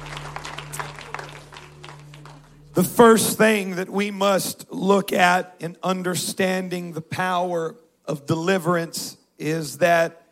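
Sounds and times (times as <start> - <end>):
audience clapping hands: 0.0 - 3.2
speech: 2.8 - 10.2.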